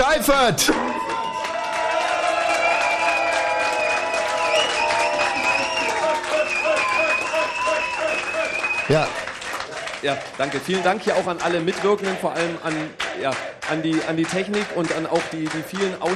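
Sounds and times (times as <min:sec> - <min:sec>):
audience applause: 0:00.0 - 0:16.1
speech: 0:00.2 - 0:01.0, 0:08.9 - 0:09.2, 0:10.0 - 0:16.1.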